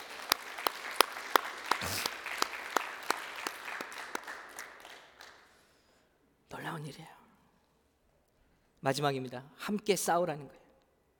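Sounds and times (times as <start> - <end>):
audience applause: 0.0 - 5.5
speech: 6.8 - 7.2, 8.8 - 10.6.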